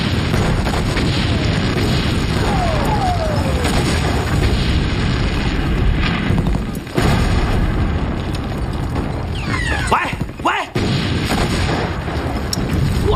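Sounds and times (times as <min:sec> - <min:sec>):
explosions: 0:00.0 - 0:13.1
rapid artillery cannon fire: 0:00.0 - 0:13.1
sharp heavy blasts: 0:00.0 - 0:13.1
voice shouting: 0:02.4 - 0:04.0.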